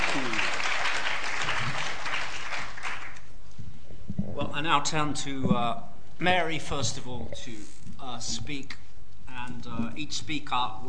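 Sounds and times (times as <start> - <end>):
audience round of applause: 0.0 - 3.3
speech: 4.6 - 8.8, 9.4 - 10.8.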